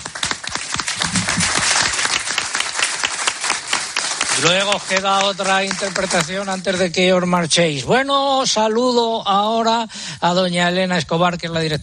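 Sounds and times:
applause: 0:00.0 - 0:07.0
speech: 0:04.4 - 0:11.8.

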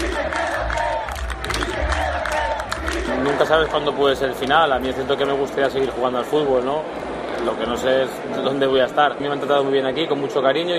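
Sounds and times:
football fans chanting a player's name: 0:00.0 - 0:04.4
speech: 0:03.4 - 0:10.7.

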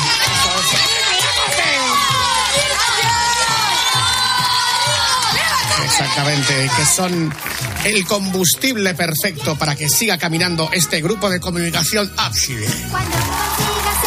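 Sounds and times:
applause: 0:00.0 - 0:09.2, 0:12.5 - 0:14.0
speech: 0:06.2 - 0:13.6.

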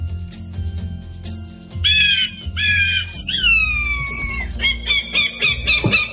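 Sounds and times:
falcon screeching: 0:01.8 - 0:06.1.

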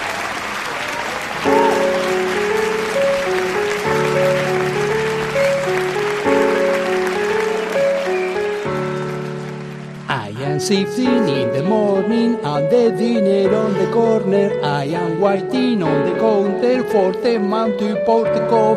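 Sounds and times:
crowd applauding: 0:00.0 - 0:11.1
repeating musical backing of sustained chords: 0:01.4 - 0:18.7
speech: 0:10.6 - 0:18.7.

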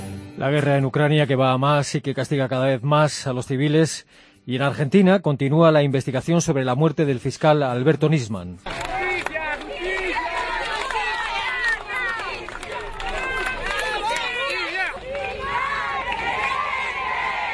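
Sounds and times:
speech: 0:00.4 - 0:08.8
crowd shouting for justice in the streets of Buenos Aires: 0:08.7 - 0:17.5.

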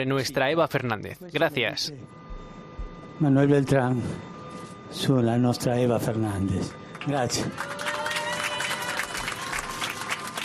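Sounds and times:
speech: 0:00.0 - 0:02.2, 0:03.2 - 0:04.3, 0:04.9 - 0:07.8
ovation applause: 0:06.9 - 0:10.4.

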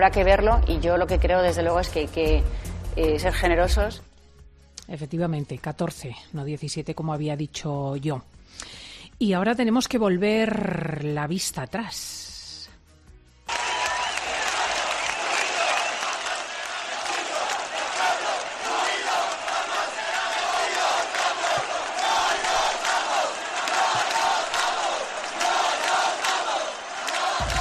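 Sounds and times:
speech: 0:00.0 - 0:04.1, 0:04.9 - 0:12.3
crowds chanting at protests: 0:13.5 - 0:27.6.

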